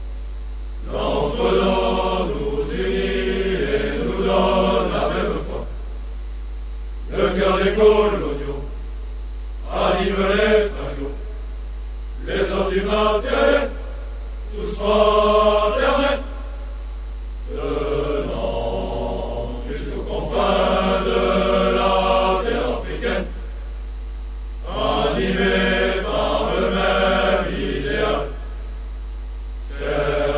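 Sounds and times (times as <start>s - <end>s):
chanting: 0.8s - 5.8s, 7.1s - 8.8s, 9.6s - 11.4s, 12.2s - 16.8s, 17.5s - 23.3s, 24.6s - 28.5s, 29.7s - 30.3s.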